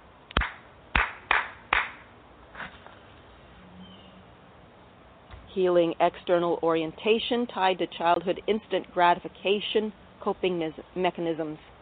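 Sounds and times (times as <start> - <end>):
sharp hand claps for energy clearing: 0.3 - 2.1
speech: 5.6 - 11.7.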